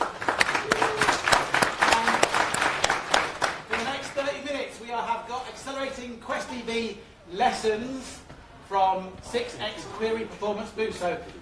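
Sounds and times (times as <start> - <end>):
audience applause: 0.0 - 4.3
speech: 6.0 - 11.4.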